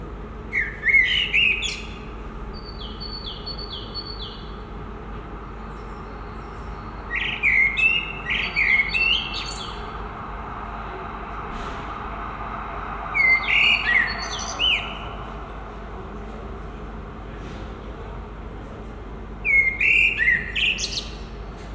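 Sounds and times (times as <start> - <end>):
common blackbird song by a residence building in Brussels: 0.5 - 4.7, 5.5 - 10.0, 13.1 - 15.4, 19.4 - 21.4.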